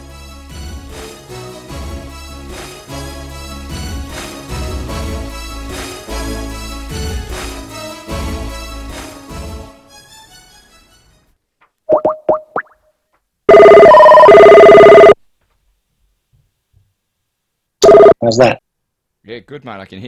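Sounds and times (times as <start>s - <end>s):
outgoing phone call dialing beeps: 13.5s - 15.2s, 17.8s - 18.2s
speech: 18.2s - 18.6s, 19.2s - 20.0s.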